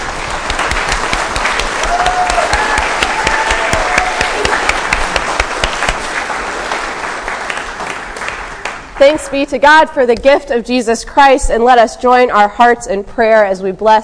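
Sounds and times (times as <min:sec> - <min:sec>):
audience applause: 0:00.0 - 0:09.3
speech: 0:09.0 - 0:14.0.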